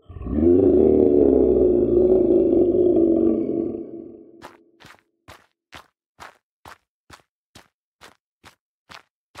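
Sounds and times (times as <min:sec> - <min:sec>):
monstrous creature roar sound effect: 0:00.0 - 0:04.4
crunching footsteps on gravel: 0:04.4 - 0:09.3.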